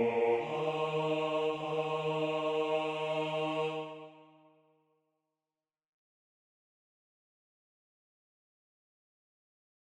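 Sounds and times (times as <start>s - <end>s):
bass choir singing: 0.0s - 4.4s.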